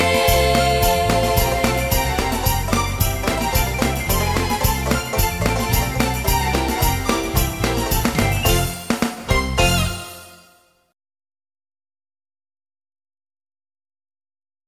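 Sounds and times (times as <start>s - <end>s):
Christmas song: 0.0s - 10.9s.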